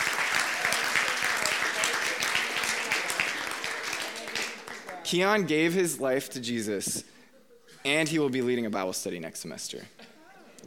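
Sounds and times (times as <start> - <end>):
audience applause: 0.0 - 5.1
speech: 5.1 - 7.1, 7.8 - 10.0.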